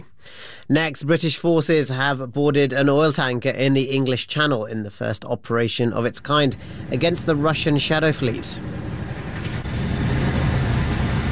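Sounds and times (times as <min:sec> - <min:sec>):
speech: 0:00.7 - 0:08.8
hovering helicopter roar as marines descend ropes: 0:06.4 - 0:11.3.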